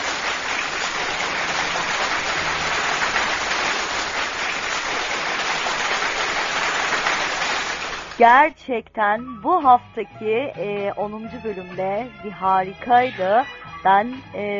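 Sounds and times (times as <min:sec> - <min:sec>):
crowd applause: 0:00.0 - 0:08.2
speech: 0:08.2 - 0:14.5.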